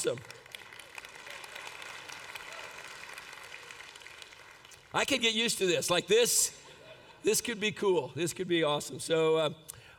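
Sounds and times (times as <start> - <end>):
speech: 0.0 - 0.4, 4.9 - 9.8
audience clapping: 0.0 - 5.4.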